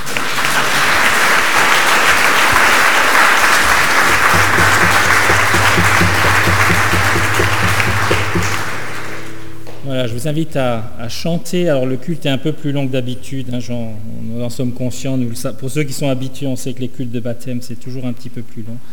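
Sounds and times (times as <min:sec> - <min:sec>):
audience applause: 0:00.0 - 0:09.6
speech: 0:10.0 - 0:18.9.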